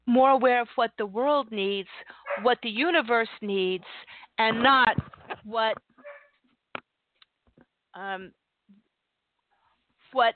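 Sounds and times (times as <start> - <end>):
speech: 0.1 - 5.9, 8.0 - 8.4, 10.1 - 10.3
dog barking: 2.2 - 2.5, 6.0 - 6.3.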